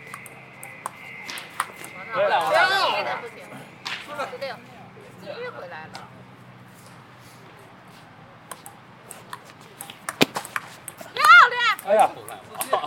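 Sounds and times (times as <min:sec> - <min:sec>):
sharp clicks and taps: 0:00.0 - 0:01.9, 0:08.5 - 0:12.7
brief tone: 0:00.0 - 0:05.0
steady low hum: 0:00.0 - 0:05.2
people talking at Ditan in Beijing: 0:00.0 - 0:06.2, 0:11.1 - 0:12.8.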